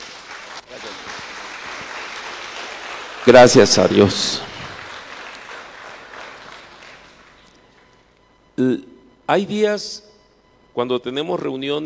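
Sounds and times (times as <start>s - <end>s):
audience applause: 0.0s - 7.4s
speech: 3.3s - 4.5s, 8.6s - 10.1s, 10.8s - 11.8s.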